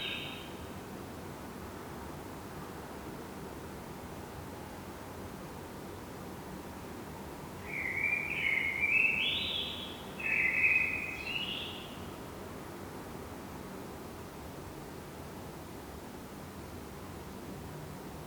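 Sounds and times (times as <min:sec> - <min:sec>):
Common blackbird Turdus merula singing: 0:00.0 - 0:00.4, 0:07.7 - 0:12.0.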